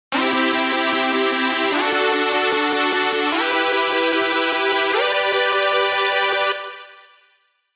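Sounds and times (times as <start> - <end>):
synth: 0.1 - 7.1.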